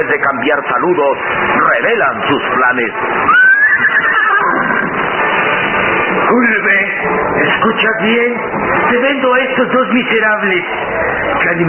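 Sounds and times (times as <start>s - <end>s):
speech: 0.0s - 3.5s, 6.3s - 11.6s
horse whinnying: 3.2s - 5.0s.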